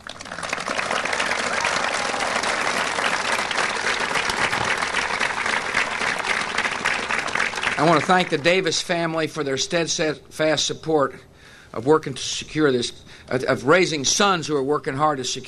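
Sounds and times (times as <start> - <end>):
audience applause: 0.0 - 8.4
speech: 7.8 - 15.4.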